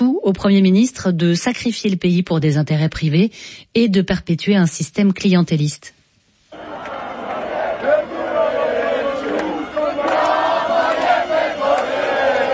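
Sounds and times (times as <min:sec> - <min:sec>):
speech: 0:00.3 - 0:06.0
large crowd of protesters shouting angrily: 0:06.5 - 0:12.5.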